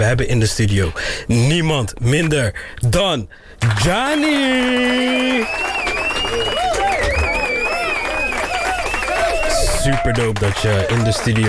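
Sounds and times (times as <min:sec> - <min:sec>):
speech: 0:00.1 - 0:06.6, 0:09.9 - 0:11.4
applause: 0:03.6 - 0:11.4
crowd whooping and cheering: 0:04.2 - 0:11.4
high sustained whistles: 0:04.9 - 0:10.0.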